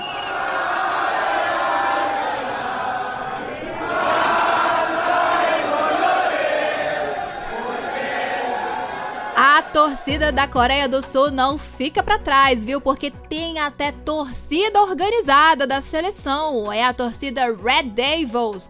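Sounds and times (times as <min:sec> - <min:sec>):
Mexican football fans singing chant: 0:00.0 - 0:10.5
speech: 0:09.7 - 0:18.6.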